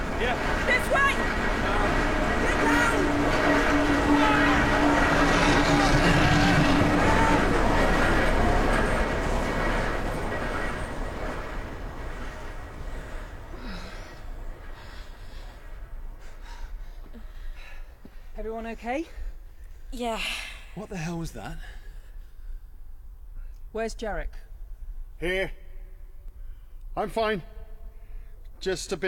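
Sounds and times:
train approaching along railway tracks with heavy rumbling roar: 0:00.0 - 0:23.2
speech: 0:18.6 - 0:19.2, 0:19.9 - 0:21.8, 0:23.7 - 0:24.5, 0:25.2 - 0:25.6, 0:27.0 - 0:27.5, 0:28.6 - 0:29.0.

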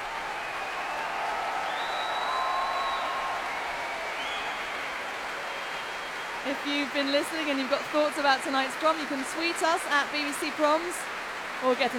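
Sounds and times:
crowd at the Royal Albert Hall cheering: 0:00.0 - 0:06.5
crowd at the Royal Albert Hall applauding: 0:00.0 - 0:11.9
speech: 0:06.5 - 0:11.9.

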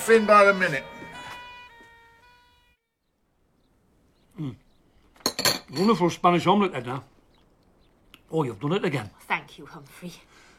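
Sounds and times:
ambulance horn tone: 0:00.0 - 0:03.0
speech: 0:00.1 - 0:00.9, 0:04.4 - 0:04.6, 0:05.7 - 0:07.1, 0:08.3 - 0:10.4.

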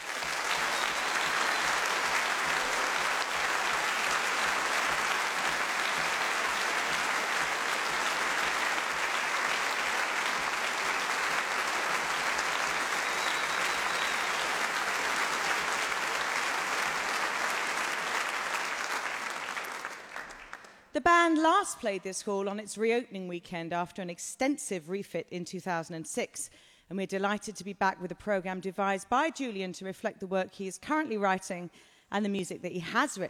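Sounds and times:
big-band jazz concert audience applause welcoming the conductor: 0:00.0 - 0:20.8
speech: 0:21.0 - 0:33.2.

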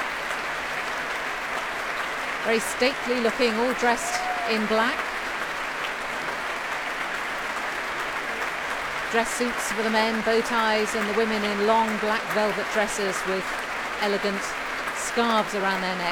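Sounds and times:
crowd applause after an orchestral concert: 0:00.0 - 0:16.1
speech: 0:02.4 - 0:05.1, 0:09.1 - 0:16.1.

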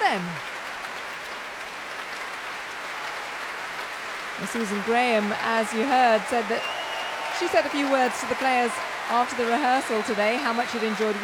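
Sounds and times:
large concert audience applause: 0:00.0 - 0:11.2
speech: 0:04.4 - 0:06.8, 0:07.4 - 0:11.2.

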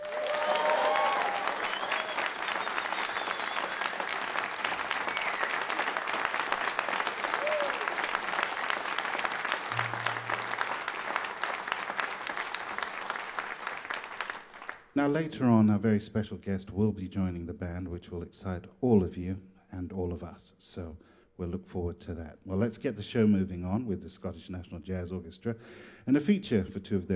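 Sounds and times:
audience applause for orchestra: 0:00.0 - 0:14.9
speech: 0:15.0 - 0:27.1.

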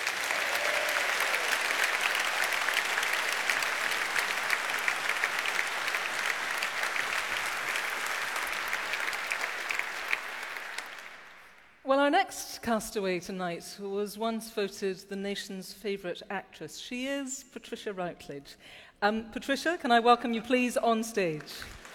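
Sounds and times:
audience applause: 0:00.0 - 0:11.8, 0:21.6 - 0:21.9
speech: 0:12.1 - 0:21.8.

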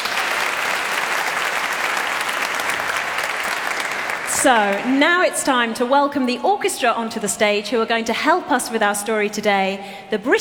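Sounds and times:
audience round of applause: 0:00.0 - 0:05.0
speech: 0:04.4 - 0:10.4.

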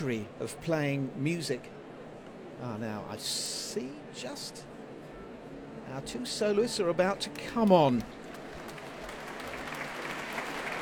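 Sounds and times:
speech: 0:00.0 - 0:01.8, 0:02.6 - 0:04.7, 0:05.9 - 0:08.2
concert audience applause: 0:07.7 - 0:10.8.

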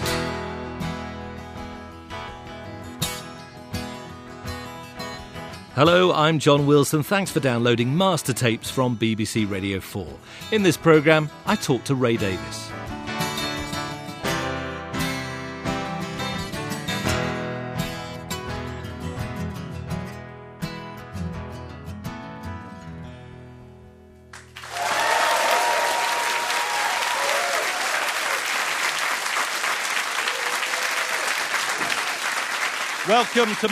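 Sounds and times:
rock song intro played live on guitars before a studio audience at Maida Vale: 0:00.0 - 0:05.8, 0:12.2 - 0:22.7
speech: 0:05.8 - 0:13.0, 0:33.2 - 0:33.6
studio audience applause at Maida Vale: 0:24.4 - 0:33.6
crowd noise: 0:24.6 - 0:33.6.

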